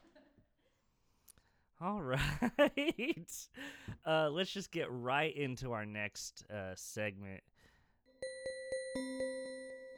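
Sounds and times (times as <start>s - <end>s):
speech: 1.8s - 7.5s
bell chime jingle introducing a podcast segment: 8.2s - 9.9s.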